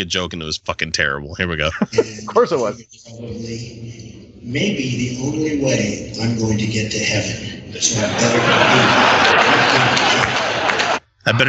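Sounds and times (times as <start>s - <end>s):
speech: 0.0s - 10.3s, 11.2s - 11.4s
laughter: 1.4s - 11.4s
crowd cheering after a politician's joke: 7.7s - 11.4s.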